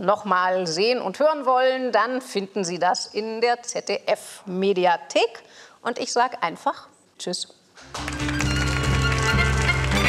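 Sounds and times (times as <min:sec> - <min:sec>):
speech: 0:00.0 - 0:08.4
audience applause: 0:07.8 - 0:10.0.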